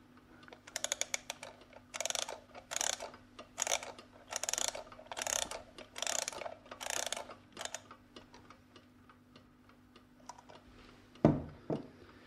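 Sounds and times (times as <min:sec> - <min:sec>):
mechanical alarm clock being wound and set for 11 p.m.: 0:00.5 - 0:08.5.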